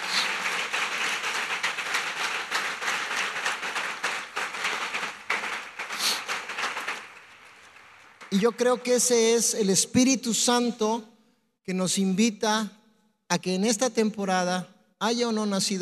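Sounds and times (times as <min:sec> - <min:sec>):
audience applause: 0:00.0 - 0:08.7
speech: 0:08.3 - 0:11.1, 0:11.7 - 0:15.7.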